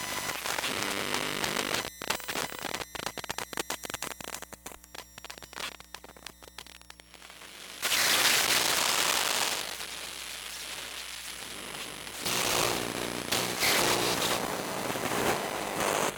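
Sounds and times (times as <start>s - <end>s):
radio transmission malfunctions: 0.0s - 16.1s.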